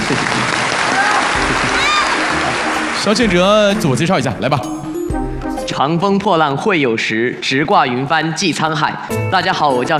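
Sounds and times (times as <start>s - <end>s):
applause from the audience of a televised quiz contest: 0.0s - 4.3s
speech: 3.0s - 4.9s, 5.8s - 9.9s.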